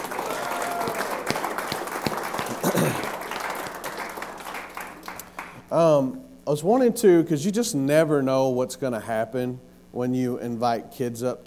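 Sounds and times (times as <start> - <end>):
audience applause: 0.0 - 5.6
speech: 5.7 - 11.4.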